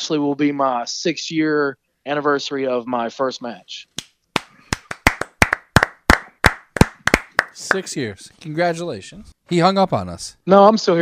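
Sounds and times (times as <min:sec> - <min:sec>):
speech: 0:00.0 - 0:04.1, 0:07.6 - 0:10.9
audience applause in paired beats: 0:04.3 - 0:08.1.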